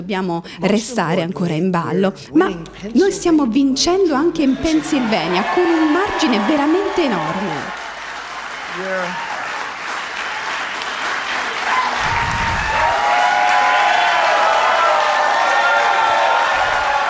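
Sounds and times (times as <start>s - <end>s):
speech: 0.0s - 7.8s, 8.8s - 9.3s
crowd shouts and whoops: 4.4s - 7.8s, 8.7s - 9.6s, 11.6s - 17.0s
crowd clapping at the White House: 4.5s - 17.0s.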